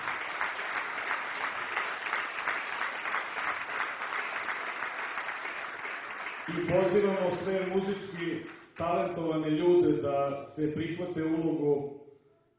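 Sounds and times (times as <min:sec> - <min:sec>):
audience applause at an evening concert of Serbian traditional music: 0:00.0 - 0:07.8
speech: 0:06.5 - 0:12.0.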